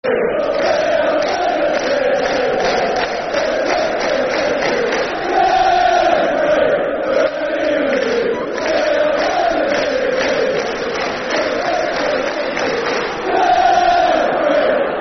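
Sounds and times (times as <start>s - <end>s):
football crowd chanting a soccer song: 0.0s - 15.0s.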